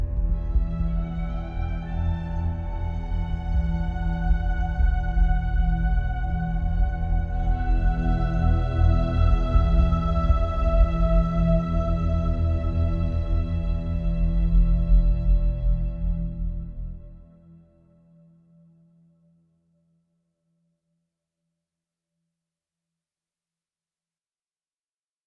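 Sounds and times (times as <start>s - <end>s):
isolation ambient music: 0.0s - 19.1s.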